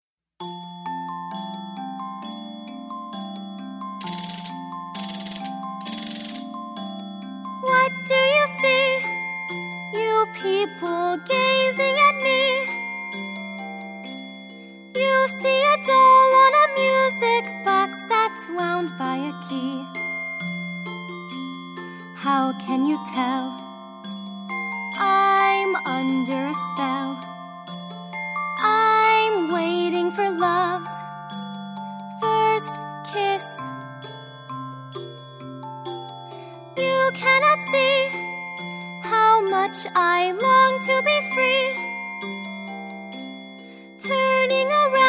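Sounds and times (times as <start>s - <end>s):
person singing audition vocals: 7.6s - 9.1s, 10.0s - 12.8s, 15.0s - 19.9s, 22.2s - 23.6s, 25.0s - 27.3s, 28.6s - 31.0s, 32.2s - 33.7s, 36.8s - 38.2s, 39.1s - 41.8s, 44.0s - 45.0s.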